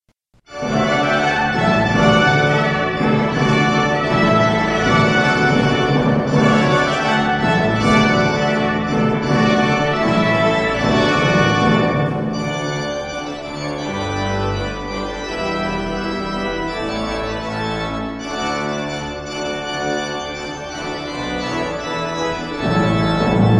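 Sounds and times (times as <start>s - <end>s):
fanfare: 0.5s - 23.5s.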